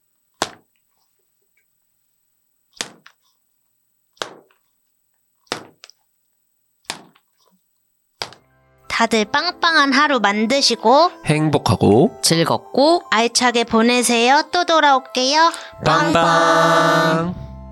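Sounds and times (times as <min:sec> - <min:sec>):
baseball thrown and caught: 0:00.4 - 0:00.7, 0:02.8 - 0:03.2, 0:04.2 - 0:04.6, 0:05.5 - 0:06.0, 0:06.8 - 0:07.3, 0:08.2 - 0:08.5
speech: 0:09.0 - 0:17.4.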